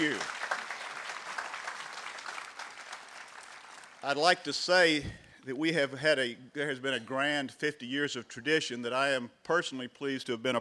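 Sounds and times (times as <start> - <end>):
audience applause: 0.0 - 4.1
speech: 4.0 - 10.6.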